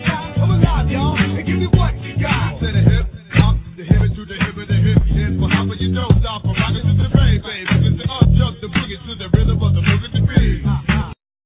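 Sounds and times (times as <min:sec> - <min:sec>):
original rap chorus: 0:00.0 - 0:11.2.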